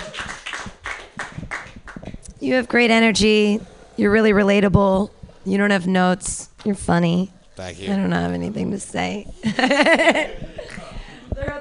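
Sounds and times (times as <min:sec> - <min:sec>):
audience clapping: 0:00.0 - 0:02.4
speech: 0:02.4 - 0:10.6
laughter: 0:09.4 - 0:11.3.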